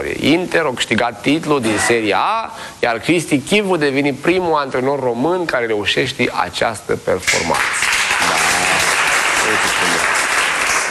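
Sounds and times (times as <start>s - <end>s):
speech: 0.0s - 7.8s
audience applause: 7.5s - 10.8s.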